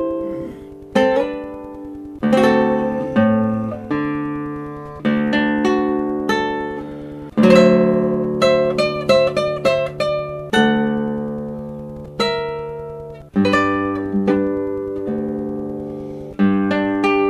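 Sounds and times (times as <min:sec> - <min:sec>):
guitar in Caazapá: 0:00.0 - 0:17.2.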